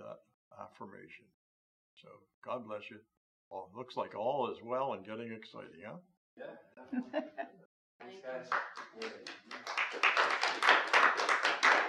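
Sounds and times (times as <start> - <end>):
speech: 0.8 - 1.4, 2.0 - 11.3
church congregation clapping at a service: 8.2 - 11.8.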